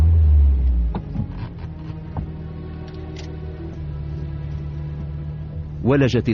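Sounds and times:
car engine rumbling: 0.0s - 6.3s.

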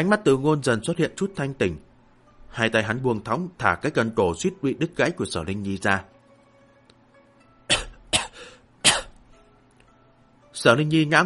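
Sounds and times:
speech: 0.0s - 1.9s, 2.5s - 6.1s, 10.6s - 11.2s
dry coughing: 7.7s - 9.2s.

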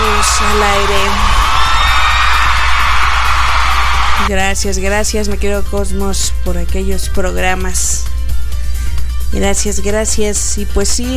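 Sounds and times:
crowd roaring in a loud ovation, cheering and applauding: 0.0s - 4.3s
speech: 4.3s - 8.2s, 9.3s - 11.1s.

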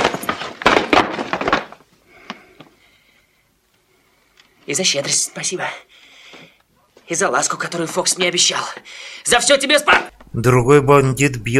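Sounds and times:
stool knocked out from under someone: 0.0s - 1.8s
speech: 4.7s - 6.0s, 7.1s - 11.5s.

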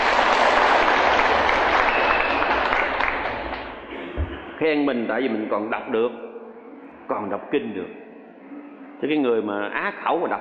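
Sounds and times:
audience clapping at a Buddhist monk's dharma talk: 0.0s - 4.1s
speech: 4.6s - 6.2s, 7.1s - 8.0s, 9.0s - 10.3s.

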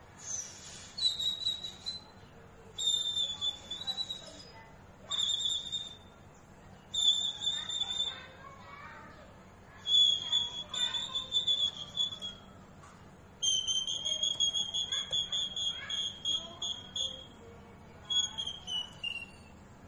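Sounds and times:
Oriental magpie-robin song: 0.2s - 6.2s, 6.8s - 8.4s, 9.8s - 12.4s, 13.4s - 17.4s, 18.0s - 19.6s.

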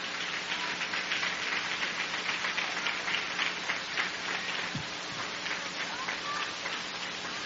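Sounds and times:
audience applauding: 0.0s - 7.4s.

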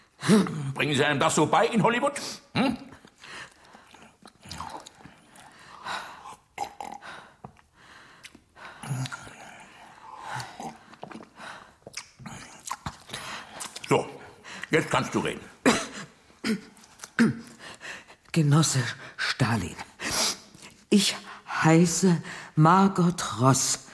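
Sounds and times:
speech: 0.3s - 2.9s, 14.9s - 15.6s, 18.4s - 19.9s, 20.9s - 23.8s
person eating breakfast, wet chewing and smacking: 3.0s - 14.7s, 16.6s - 18.3s.

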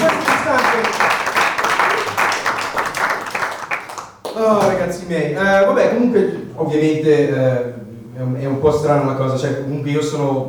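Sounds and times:
audience applause: 0.0s - 4.3s
speech: 5.1s - 7.7s, 8.6s - 10.4s.

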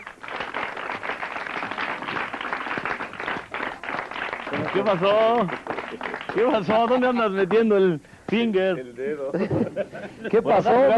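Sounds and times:
audience applause for a guest on a television comedy show: 0.0s - 7.6s
speech: 4.7s - 10.9s
laughter: 9.3s - 10.9s.

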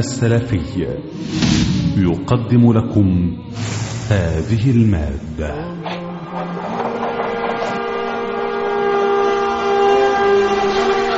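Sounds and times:
speech: 0.0s - 5.8s
train horn: 5.8s - 11.1s.

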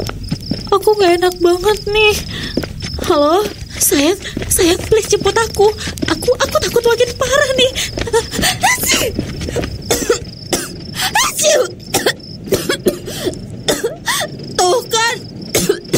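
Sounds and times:
speech: 1.0s - 9.8s, 11.4s - 13.4s
coughing: 7.9s - 14.4s, 15.5s - 15.9s.

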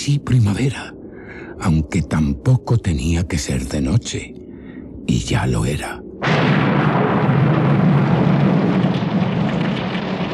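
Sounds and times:
speech: 0.0s - 1.0s, 1.6s - 4.4s, 5.1s - 6.9s
heavy rain: 6.2s - 10.3s
thunder: 6.2s - 10.3s.

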